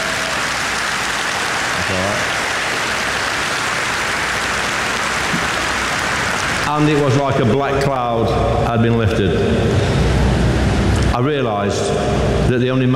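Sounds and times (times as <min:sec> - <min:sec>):
crowd applauding: 0:00.0 - 0:07.5
speech: 0:06.7 - 0:09.9, 0:11.2 - 0:12.9.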